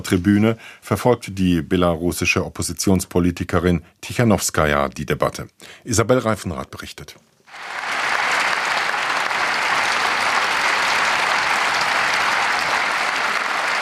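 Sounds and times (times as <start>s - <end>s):
speech: 0.0s - 7.8s
applause from parliament members: 7.5s - 13.8s.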